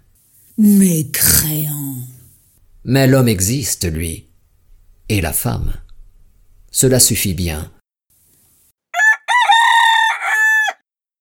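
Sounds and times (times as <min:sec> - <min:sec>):
speech: 0:00.6 - 0:02.1, 0:02.8 - 0:04.3, 0:05.1 - 0:05.8, 0:06.7 - 0:07.8
rooster crowing at dawn: 0:09.0 - 0:10.9.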